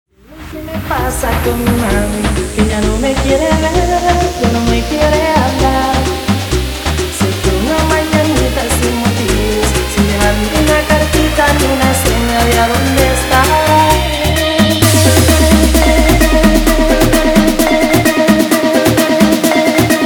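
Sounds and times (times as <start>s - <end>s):
guaracha remix music: 0.3s - 20.0s.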